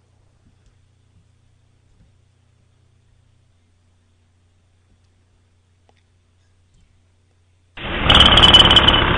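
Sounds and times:
jackhammer: 0:07.8 - 0:09.1.

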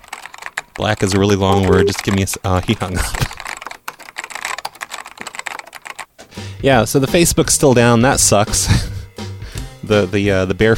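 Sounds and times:
rapid typing on a computer keyboard: 0:00.0 - 0:06.1
speech: 0:00.8 - 0:03.4, 0:06.6 - 0:08.9, 0:09.9 - 0:10.7.

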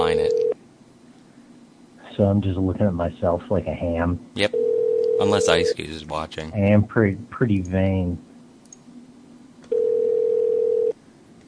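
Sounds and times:
electronic phone ring tone: 0:00.0 - 0:00.6, 0:04.5 - 0:05.7, 0:09.7 - 0:11.0
speech: 0:02.2 - 0:08.3.

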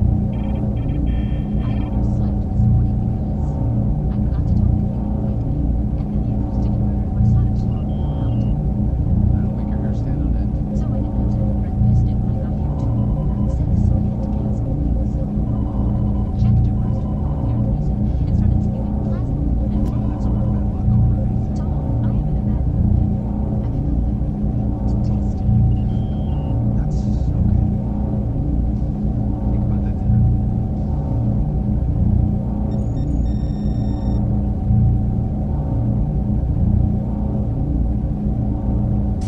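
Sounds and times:
engineering warp core background ambience: 0:00.0 - 0:39.2.

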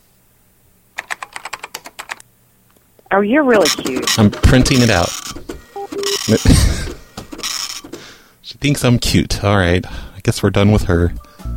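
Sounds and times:
typing on a computer keyboard: 0:01.0 - 0:02.2, 0:03.6 - 0:08.0
speech: 0:03.1 - 0:05.5, 0:06.3 - 0:06.9, 0:08.6 - 0:11.2.

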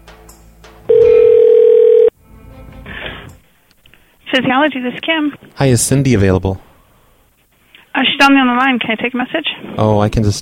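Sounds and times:
telephone dial tone while placing call: 0:00.9 - 0:02.1
speech: 0:04.4 - 0:06.7, 0:08.3 - 0:10.3.

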